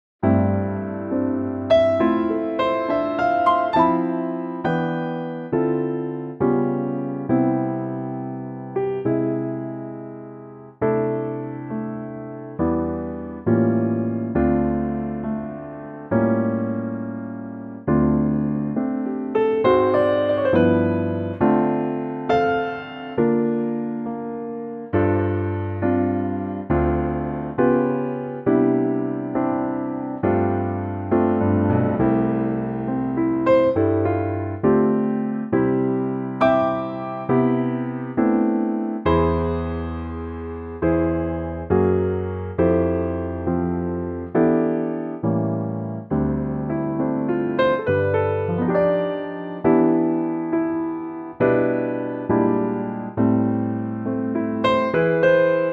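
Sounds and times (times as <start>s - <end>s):
piano note C: 0.2s - 55.7s.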